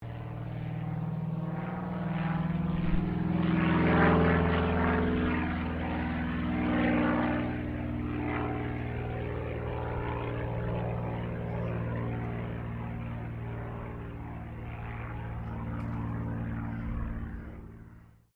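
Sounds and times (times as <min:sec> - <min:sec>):
distant CAC CA-25 Winjeel fighter trainer aircraft passing: 0:00.0 - 0:18.3.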